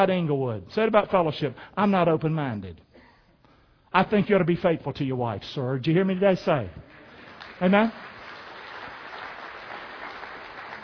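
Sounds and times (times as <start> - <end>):
speech: 0.0 - 2.9, 3.9 - 6.9, 7.6 - 8.1
audience applause: 6.9 - 10.8.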